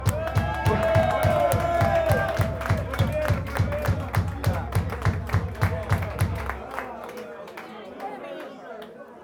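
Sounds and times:
voices cheering and whooping: 0.0 - 2.8
crowd clapping in unison rhythm for a birthday: 0.0 - 9.0.

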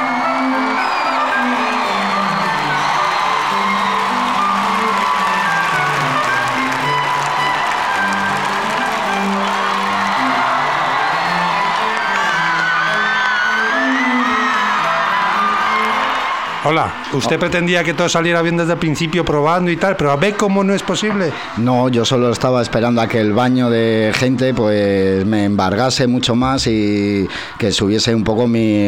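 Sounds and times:
audience applause: 0.0 - 22.8
audience cheering: 0.0 - 28.1
speech: 16.7 - 28.8.

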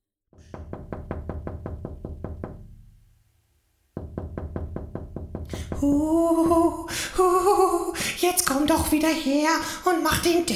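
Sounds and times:
ghost knocking from inside an urn: 0.4 - 2.9, 4.0 - 5.9
speech: 5.8 - 10.5.

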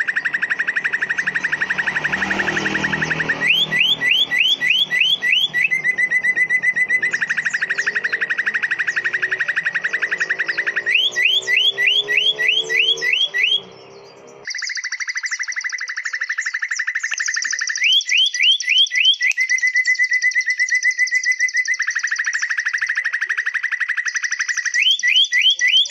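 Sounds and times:
leafbird singing: 0.0 - 25.8.

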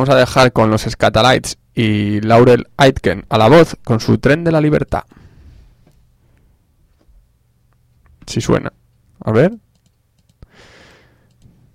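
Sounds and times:
speech: 0.0 - 5.3, 8.3 - 9.6
typing on a computer keyboard: 9.7 - 10.5.

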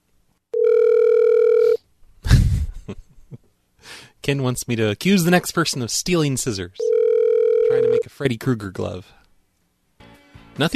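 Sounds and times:
telephone dial tone after a call disconnects: 0.6 - 1.8, 6.8 - 8.0
speech: 4.3 - 6.9, 7.7 - 9.2, 10.6 - 10.7.

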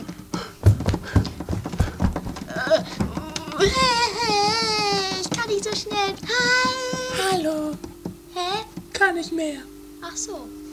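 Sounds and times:
footsteps of people running away: 0.0 - 9.8
wavering high-pitched tone: 3.1 - 10.7
speech: 8.4 - 10.6.

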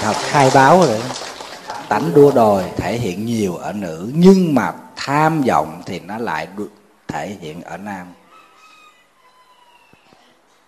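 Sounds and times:
speech: 0.0 - 1.2, 1.9 - 8.2
rooster crowing in the middle of a city: 8.2 - 10.4.

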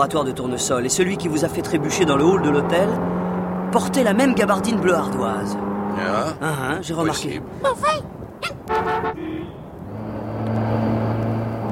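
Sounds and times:
Citroën Traction Avant car engine drone, approaching and pulling out to overtake a taxi: 0.0 - 6.4, 8.6 - 11.6
speech: 0.0 - 9.6
Citroën Traction Avant car horn toot: 8.7 - 9.8.

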